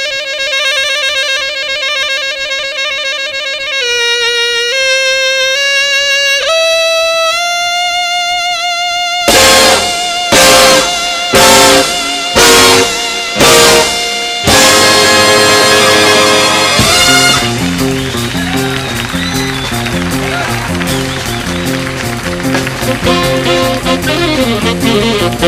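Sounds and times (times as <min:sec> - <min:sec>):
saxophone solo: 0:00.0 - 0:25.4.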